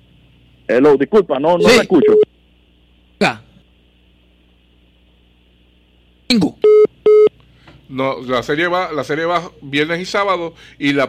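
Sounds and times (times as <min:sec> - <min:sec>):
speech: 0:00.7 - 0:02.2, 0:08.0 - 0:11.0
telephone line tones after a dropped call: 0:06.6 - 0:07.3.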